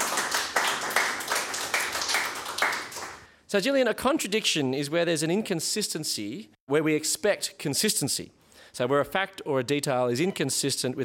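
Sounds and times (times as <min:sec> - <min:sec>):
round of applause: 0:00.0 - 0:03.3
speech: 0:03.5 - 0:11.0.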